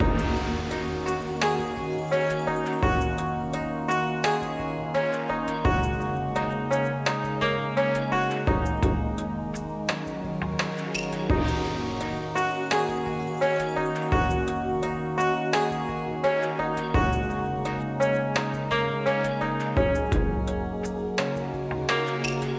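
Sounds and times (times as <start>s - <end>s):
paytable background music: 0.0s - 22.5s.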